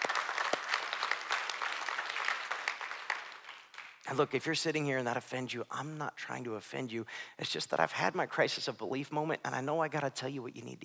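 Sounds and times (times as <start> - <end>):
crowd applauding: 0.0 - 4.1
speech: 4.1 - 10.8.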